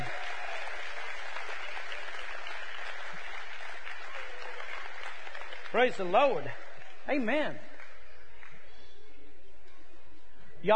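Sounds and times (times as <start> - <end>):
audience applause: 0.0 - 8.6
speech: 5.7 - 7.7.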